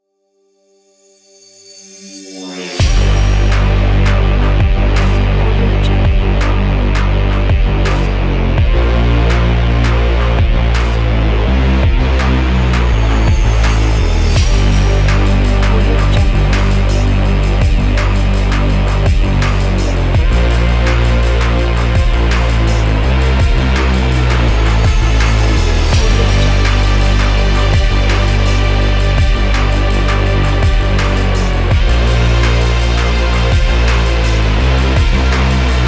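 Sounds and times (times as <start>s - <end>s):
dark experimental music: 1.3s - 35.8s.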